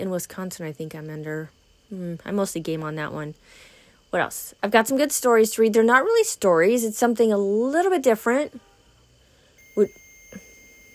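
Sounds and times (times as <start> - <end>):
speech: 0.0 - 8.7, 9.8 - 10.4
faint steady hum: 0.0 - 10.9
electronic alarm beeps for a temperature change: 9.6 - 10.9.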